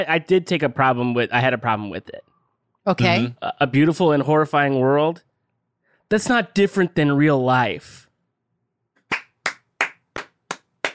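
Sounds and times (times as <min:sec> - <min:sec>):
speech: 0:00.0 - 0:05.3, 0:06.1 - 0:08.0
clapping: 0:09.0 - 0:10.9.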